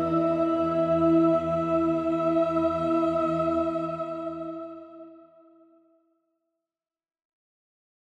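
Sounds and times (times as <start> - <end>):
choir singing: 0.0 - 5.6.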